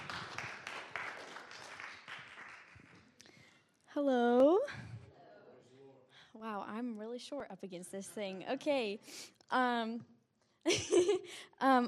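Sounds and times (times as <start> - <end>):
audience hand clapping: 0.0 - 3.3
speech: 4.0 - 4.4, 6.4 - 11.8.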